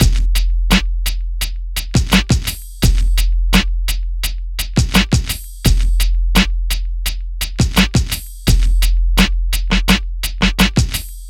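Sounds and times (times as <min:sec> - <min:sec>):
hip hop and R&B drum loop: 0:00.0 - 0:11.2.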